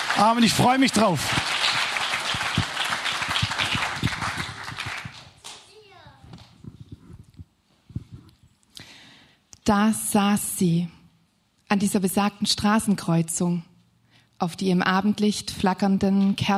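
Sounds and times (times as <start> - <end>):
audience applause: 0.0 - 5.6
speech: 0.2 - 1.6, 9.7 - 11.0, 11.7 - 13.7, 14.4 - 16.5.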